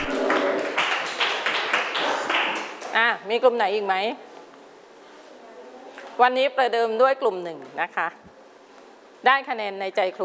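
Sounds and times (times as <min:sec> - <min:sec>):
group of children clapping their hands: 0:00.0 - 0:02.9
speech: 0:03.0 - 0:04.3, 0:06.2 - 0:08.3, 0:09.2 - 0:10.2.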